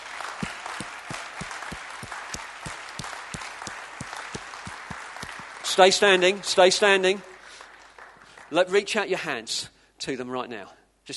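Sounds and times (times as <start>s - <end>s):
crowd applauding: 0.0s - 8.9s
speech: 5.7s - 7.3s, 8.5s - 11.1s.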